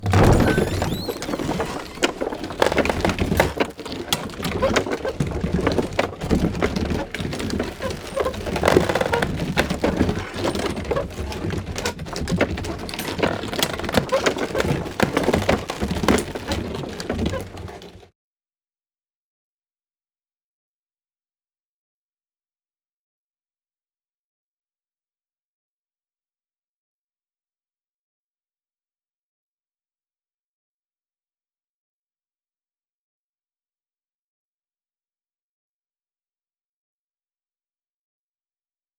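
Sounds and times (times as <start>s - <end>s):
drawbridge handle: 0.0s - 18.0s.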